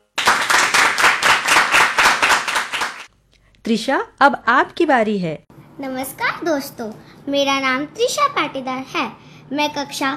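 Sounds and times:
audience clapping for a child's performance: 0.0s - 3.1s
speech: 3.7s - 10.1s.

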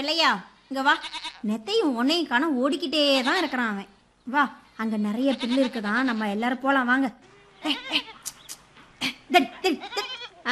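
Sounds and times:
speech: 0.0s - 8.2s, 9.0s - 10.4s
goats bleating: 0.9s - 1.5s, 5.2s - 6.4s, 7.3s - 8.3s, 9.6s - 10.4s.

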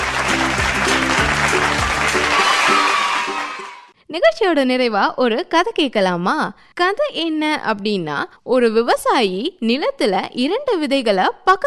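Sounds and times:
audience applause for children: 0.0s - 3.9s
speech: 4.1s - 11.6s.

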